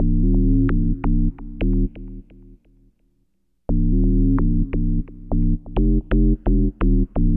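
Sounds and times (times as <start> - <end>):
bass breakbeat: 0.0 - 2.2, 3.7 - 7.3.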